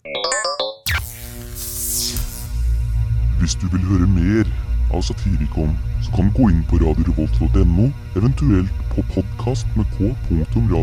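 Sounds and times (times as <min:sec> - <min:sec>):
podcast closing jingle: 0:02.4 - 0:10.8
speech: 0:03.4 - 0:10.8.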